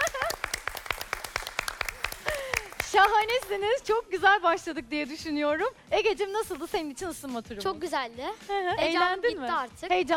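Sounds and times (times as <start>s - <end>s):
quiz-show contestant clapping for himself: 0.0s - 3.6s
speech: 2.9s - 10.1s.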